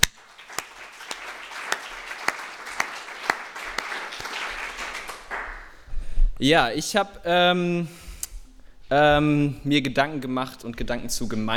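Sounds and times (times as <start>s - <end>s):
small round of applause: 0.0s - 5.8s
speech: 6.4s - 8.0s, 8.9s - 11.5s.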